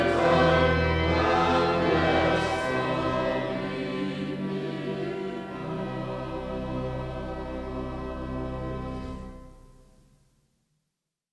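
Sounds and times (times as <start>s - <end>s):
choir singing hymns: 0.0s - 8.8s.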